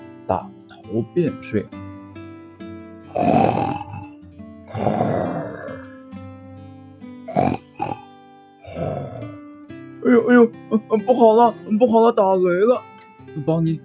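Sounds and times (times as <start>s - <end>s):
speech: 0.3s - 1.8s, 3.1s - 3.8s, 10.9s - 13.8s
person imitating loud snoring: 3.1s - 6.1s, 7.3s - 8.0s, 8.6s - 9.3s.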